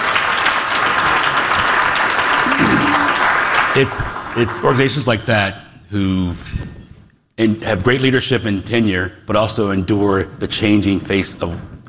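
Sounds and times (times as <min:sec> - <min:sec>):
audience applause: 0:00.0 - 0:05.0
speech: 0:03.8 - 0:06.8, 0:07.4 - 0:11.8.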